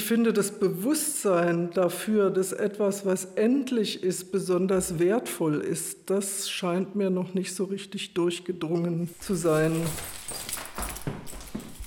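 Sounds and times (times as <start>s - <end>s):
speech: 0.1s - 10.6s
large bunch of keys jingling as taken from drawer: 9.1s - 11.8s.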